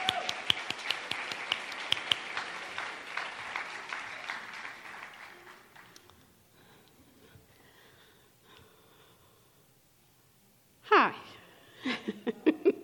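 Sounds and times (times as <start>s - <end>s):
audience applause: 0.0s - 6.2s
laughter: 11.8s - 12.8s.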